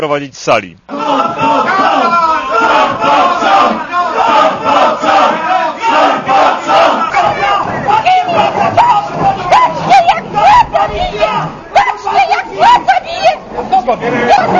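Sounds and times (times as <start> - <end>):
people shouting in a courtroom: 0.9 - 14.5.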